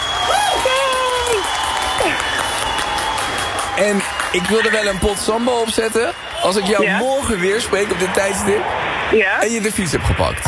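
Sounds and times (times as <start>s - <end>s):
applause: 0.0s - 8.2s
speech: 3.8s - 10.4s.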